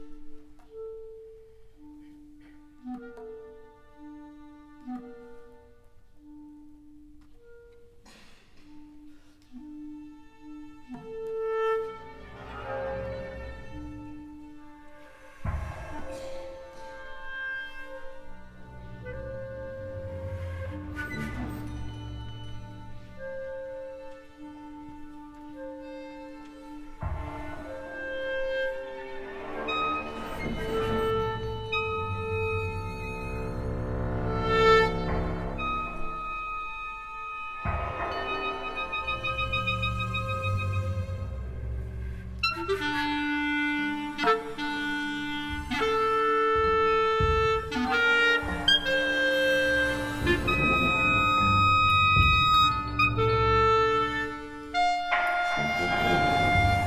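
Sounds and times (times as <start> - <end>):
clarinet and orchestra: 0.0 - 56.8.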